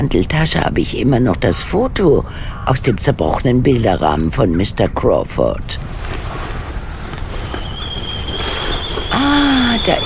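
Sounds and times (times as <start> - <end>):
speech: 0.0 - 5.9, 9.8 - 10.0
water boiling in a kettle: 5.8 - 10.0
kettle whistle: 6.8 - 10.0.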